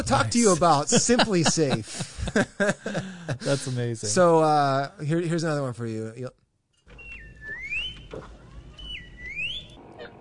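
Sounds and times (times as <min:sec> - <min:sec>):
laughter: 0:00.0 - 0:04.0
speech: 0:00.1 - 0:06.4
R2-D2-style robot beeps and whistles: 0:07.0 - 0:09.8.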